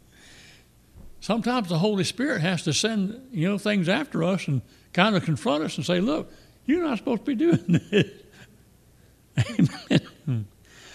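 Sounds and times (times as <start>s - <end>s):
speech: 1.2s - 8.2s, 9.4s - 10.5s
person coughing raspily: 9.4s - 10.5s.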